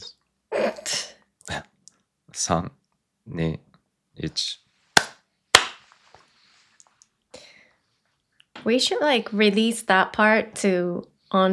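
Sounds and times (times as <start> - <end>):
speech: 2.4 - 4.6, 8.7 - 11.5
hand claps for audio sync: 5.0 - 5.9.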